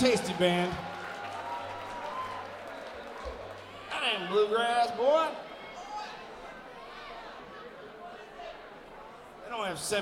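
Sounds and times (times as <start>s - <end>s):
speech: 0.0s - 0.9s, 4.2s - 5.5s, 9.5s - 10.0s
audience applause for a band: 0.0s - 4.6s.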